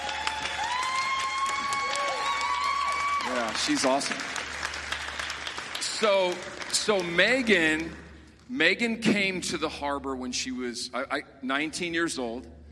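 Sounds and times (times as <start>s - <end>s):
audience applause: 0.0s - 8.1s
speech: 3.4s - 4.4s, 6.0s - 12.6s.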